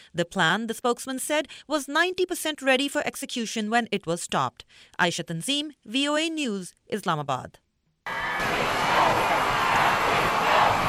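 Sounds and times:
speech: 0.1s - 9.3s
large crowd cheering a welcome: 8.1s - 10.8s.

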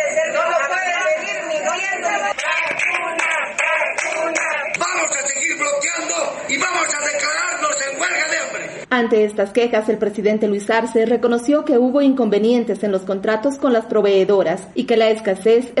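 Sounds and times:
protest crowd shouting: 0.0s - 7.4s
sharp claps or bangs: 2.3s - 5.7s
speech: 9.0s - 15.7s.

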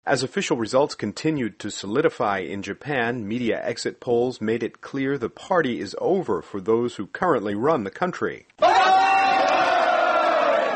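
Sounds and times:
speech: 0.0s - 8.9s
supporters cheering at Democratic Party of Japan headquarters: 8.6s - 10.7s.

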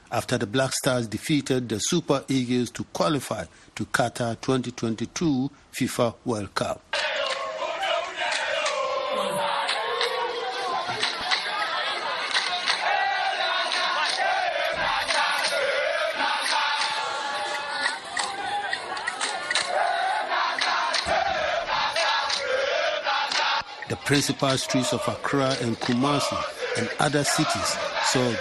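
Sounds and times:
speech: 0.1s - 7.1s, 24.1s - 28.4s
people chanting: 6.9s - 28.4s
crowd of soccer fans cheering: 7.0s - 28.4s.

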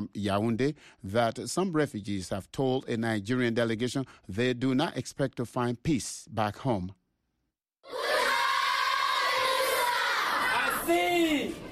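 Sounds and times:
speech: 0.0s - 7.0s, 10.9s - 11.7s
primary school children singing at Minawawa refugee camp, Cameroon: 7.9s - 10.6s.

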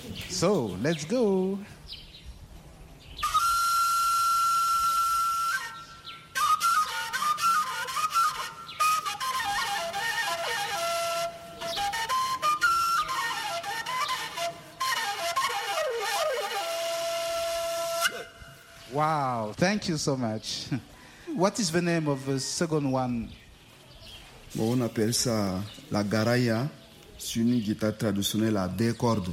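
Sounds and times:
speech: 0.4s - 2.0s, 19.7s - 23.4s, 24.5s - 29.3s
pentatonic four-hole shepherd's flute playing: 3.2s - 19.2s.

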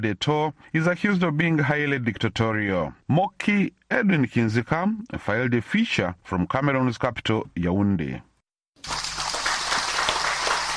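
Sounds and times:
speech: 0.0s - 9.0s
hundreds of football fans applauding in Cameroon: 8.8s - 10.7s.

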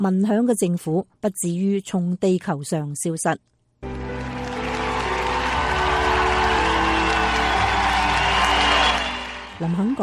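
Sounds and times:
speech: 0.0s - 4.0s, 9.6s - 10.0s
audience applause: 3.8s - 10.0s.

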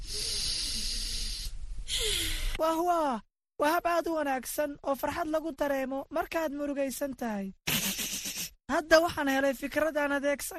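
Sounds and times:
slow deep breath released like blowing out a candle: 0.0s - 2.6s
speech: 2.6s - 7.6s, 8.7s - 10.5s.

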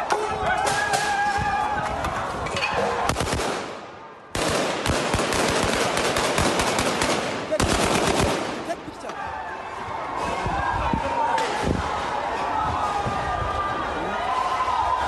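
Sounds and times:
chaotic outdoor crowd noise: 0.0s - 15.0s
police gunfire during street protest: 3.1s - 8.8s.

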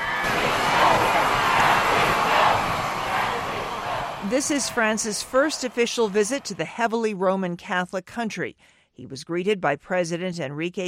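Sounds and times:
crowd cheering and welcoming Pope Francis in Mexico City: 0.0s - 7.0s
speech: 4.3s - 10.8s.

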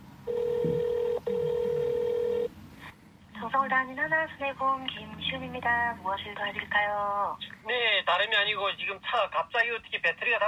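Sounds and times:
telephone ringback tone on the line: 0.3s - 2.5s
speech: 3.6s - 10.4s.

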